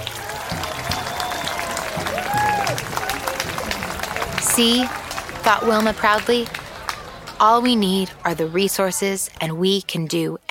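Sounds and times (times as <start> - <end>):
crowd cheering and whooping: 0.0 - 5.4
crowd applause: 0.0 - 8.6
speech: 4.6 - 6.6, 7.4 - 10.4.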